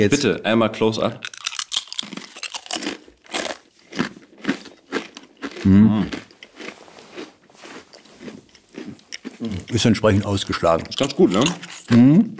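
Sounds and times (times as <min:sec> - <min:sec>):
speech: 0:00.0 - 0:01.4, 0:05.6 - 0:06.3, 0:09.4 - 0:12.3
crunching salty crispbread: 0:01.2 - 0:12.3
murmured voice: 0:05.6 - 0:06.1.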